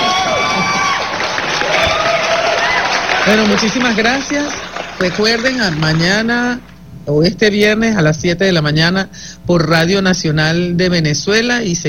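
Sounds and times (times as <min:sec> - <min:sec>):
excited voices whooping: 0:00.0 - 0:06.1
people clapping for young girls in a radio studio: 0:00.0 - 0:06.7
speech: 0:03.3 - 0:11.8.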